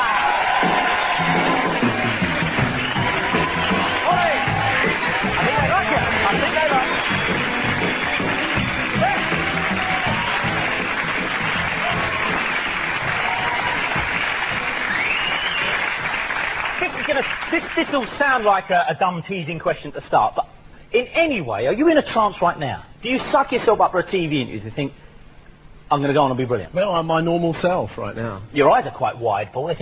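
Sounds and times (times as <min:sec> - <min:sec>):
scattered cheers: 0:00.0 - 0:17.3
studio audience applauding: 0:00.0 - 0:18.6
speech: 0:17.9 - 0:25.0, 0:25.9 - 0:29.7.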